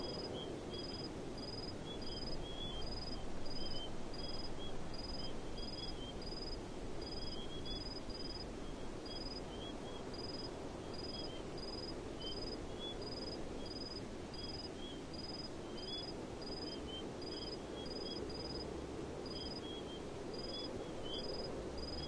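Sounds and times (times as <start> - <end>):
crickets chirping in desert: 0.0 - 22.0.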